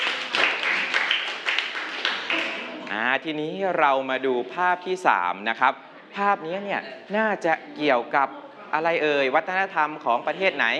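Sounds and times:
classroom of children clapping: 0:00.0 - 0:02.9
speech: 0:02.9 - 0:10.7.

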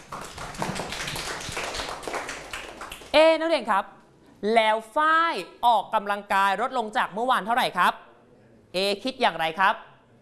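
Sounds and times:
students clapping: 0:00.0 - 0:03.2
speech: 0:03.1 - 0:08.0, 0:08.7 - 0:09.9.

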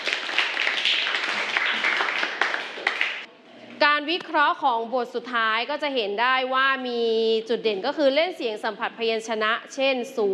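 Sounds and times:
classroom group clapping: 0:00.0 - 0:03.3
speech: 0:04.0 - 0:10.3.

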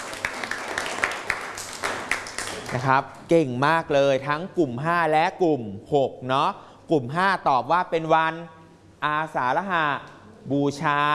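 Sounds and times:
students in a classroom clapping for their classmates: 0:00.0 - 0:02.9
speech: 0:02.7 - 0:11.1.

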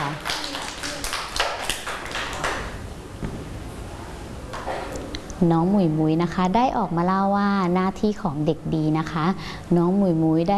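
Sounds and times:
children clapping: 0:00.0 - 0:02.8
speech: 0:05.4 - 0:10.5.

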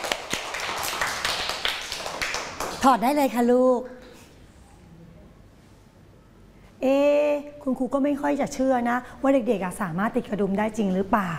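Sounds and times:
children clapping for a classmate: 0:00.0 - 0:03.0
speech: 0:02.8 - 0:04.0, 0:06.8 - 0:11.3.

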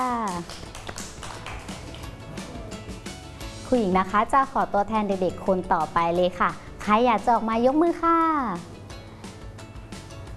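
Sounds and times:
group of children clapping together: 0:00.0 - 0:02.9
speech: 0:03.7 - 0:08.8.

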